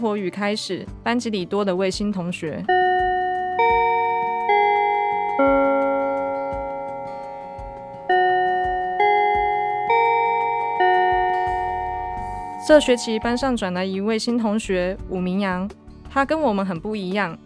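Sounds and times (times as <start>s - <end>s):
speech: 0.0s - 2.8s, 12.7s - 17.4s
school bell chime melody: 2.7s - 13.5s.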